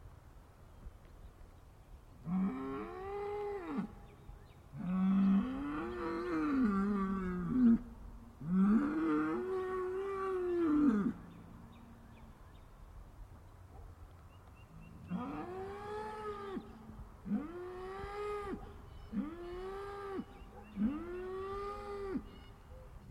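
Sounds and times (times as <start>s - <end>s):
cow bellowing: 2.3s - 4.0s, 4.8s - 11.3s, 15.0s - 22.5s.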